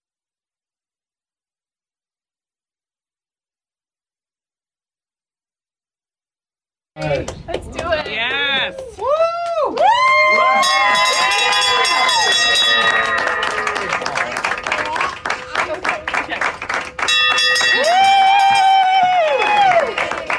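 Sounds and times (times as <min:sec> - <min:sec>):
speech: 0:07.0 - 0:09.1
people clapping: 0:07.0 - 0:20.3
cheering and whooping voices: 0:08.3 - 0:20.3
bell rung to mark the end of chemotherapy: 0:10.6 - 0:14.0, 0:17.0 - 0:18.8.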